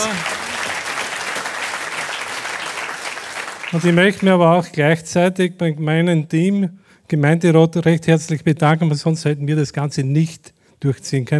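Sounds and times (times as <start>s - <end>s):
audience applause: 0.0s - 4.0s
speech: 3.7s - 11.3s.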